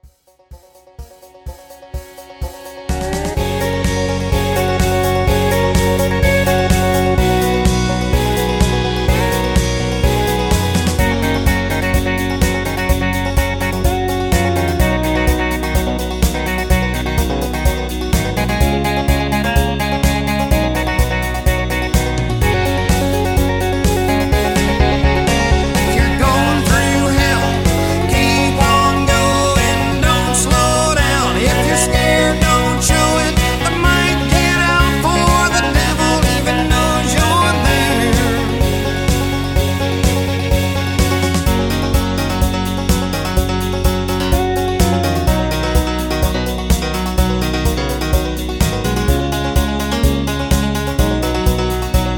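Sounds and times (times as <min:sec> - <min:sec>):
instrumental music: 0:00.0 - 0:52.1
backing vocals: 0:25.2 - 0:39.4.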